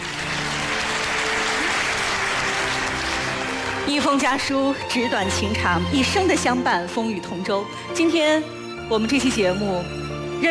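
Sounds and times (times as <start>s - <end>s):
audience applause: 0.0s - 5.1s
speech: 3.9s - 10.4s.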